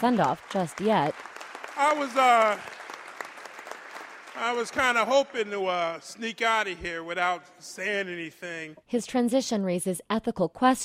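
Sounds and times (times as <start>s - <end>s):
speech: 0.0s - 2.8s, 4.4s - 10.8s
legislators applauding in a chamber: 0.0s - 6.2s.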